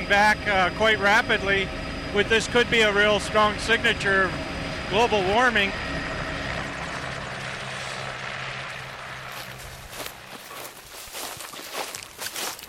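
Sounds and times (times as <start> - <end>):
helicopter landing with rotor and engine roar: 0.0 - 12.6
speech: 0.1 - 5.8
crunching footsteps on rough ground: 8.7 - 12.6.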